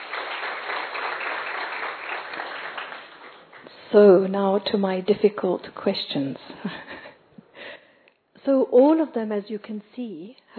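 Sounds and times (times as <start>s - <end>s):
audience applause: 0.0s - 3.7s
speech: 3.9s - 7.0s, 8.4s - 10.5s.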